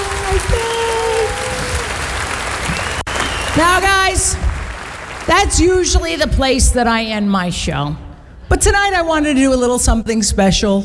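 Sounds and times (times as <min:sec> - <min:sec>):
person whooping: 0:00.0 - 0:02.1
audience applause: 0:00.0 - 0:05.6
speech: 0:00.4 - 0:00.7, 0:03.6 - 0:04.5, 0:05.3 - 0:10.8.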